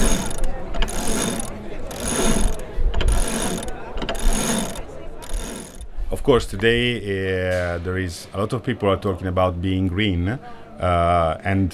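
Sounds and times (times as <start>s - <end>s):
electric sailboat winch: 0.0s - 5.9s
speech: 6.3s - 11.7s.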